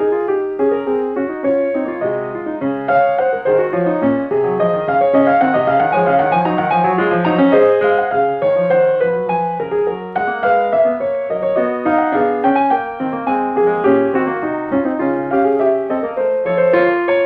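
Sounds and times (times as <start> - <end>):
fugue in B flat minor: 0.0 - 17.2.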